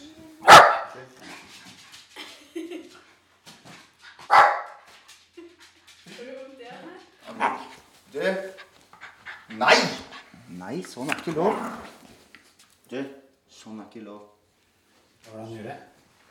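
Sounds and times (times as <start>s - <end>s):
dog barking: 0.4s - 1.1s, 4.2s - 4.8s, 7.3s - 7.7s, 9.6s - 10.0s
speech: 10.8s - 11.8s.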